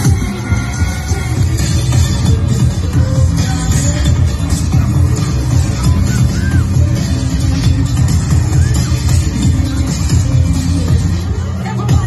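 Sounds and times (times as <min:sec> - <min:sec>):
crowd chatter at a fire dance on Alona Beach: 0:00.0 - 0:12.0.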